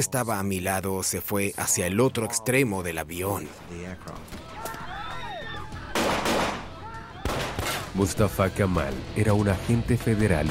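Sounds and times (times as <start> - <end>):
speech: 0.0 - 4.7, 8.0 - 10.4
many gunshots: 5.9 - 8.0.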